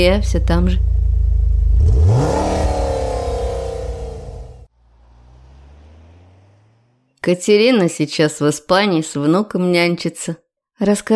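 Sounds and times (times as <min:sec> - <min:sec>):
speech: 0:00.0 - 0:00.9, 0:07.2 - 0:11.1
taxi engine revving as it pulls away: 0:00.4 - 0:07.3.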